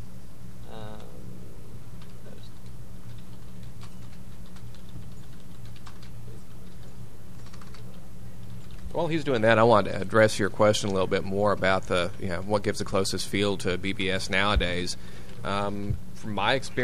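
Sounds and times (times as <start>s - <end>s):
computer keyboard typing a message on a BBS message board: 2.0s - 9.8s
speech: 9.0s - 16.8s.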